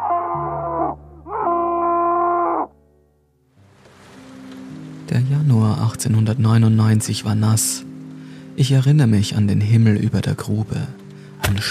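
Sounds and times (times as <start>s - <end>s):
man screaming: 0.0s - 2.7s
speech: 5.1s - 7.9s, 8.6s - 11.6s.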